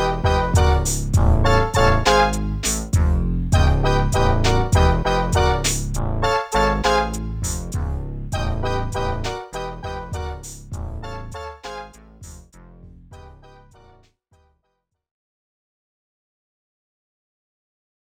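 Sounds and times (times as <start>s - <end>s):
boss conversation background music: 0.0s - 12.4s, 13.1s - 14.0s.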